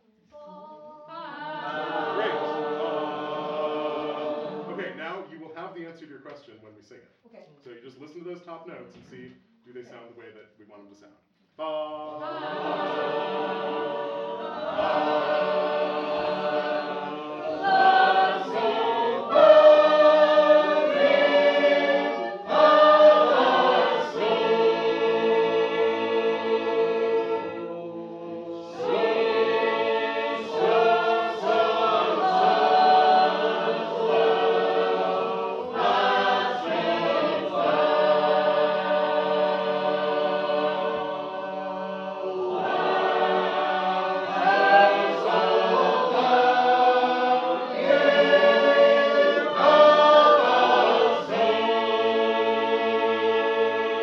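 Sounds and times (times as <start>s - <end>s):
sacred harp singing: 0.0s - 5.7s, 11.6s - 54.0s.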